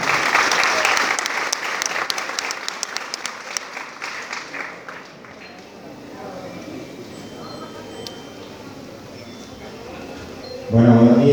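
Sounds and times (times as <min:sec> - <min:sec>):
crowd clapping at a campesino assembly event in Colombia: 0:00.0 - 0:06.0.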